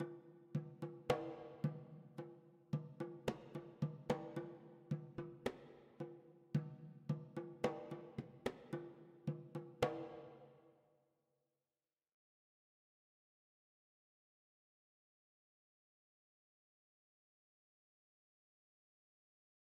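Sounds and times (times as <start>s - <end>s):
drums: 0.0s - 10.5s.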